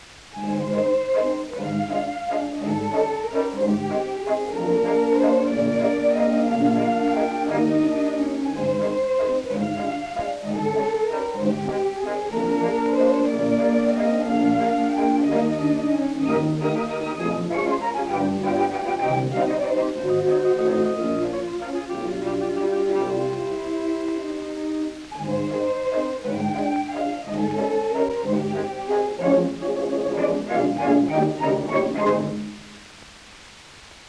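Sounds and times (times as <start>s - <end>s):
waltz: 0.0s - 32.9s.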